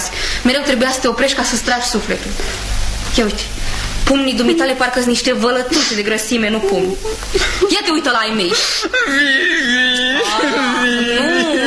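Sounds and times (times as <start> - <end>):
speech: 0.4 - 11.6
laughter: 6.5 - 11.6
person whimpering and starting to cry: 6.6 - 7.4, 8.5 - 11.6.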